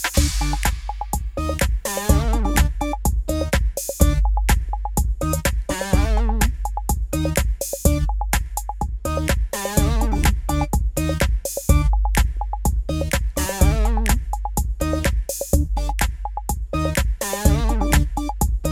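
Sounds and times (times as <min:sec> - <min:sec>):
instrumental music: 0:00.1 - 0:18.7.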